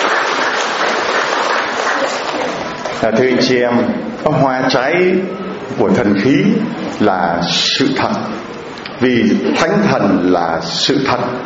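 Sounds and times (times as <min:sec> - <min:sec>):
congregation applause at a church gathering: 0:00.0 - 0:03.0
speech: 0:03.0 - 0:11.4.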